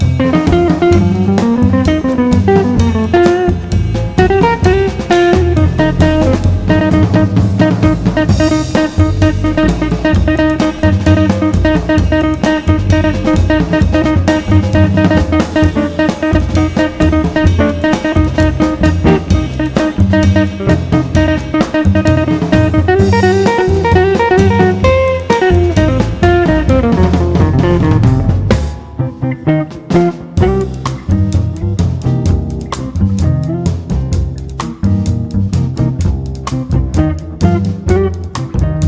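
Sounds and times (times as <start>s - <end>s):
drums: 0.0s - 38.8s
guitar: 0.0s - 38.8s.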